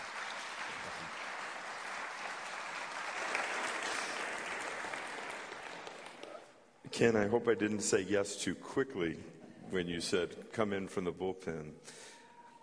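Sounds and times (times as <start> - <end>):
church congregation applauding a guest speaker at a morning service: 0.0 - 6.6
speech: 7.0 - 12.1.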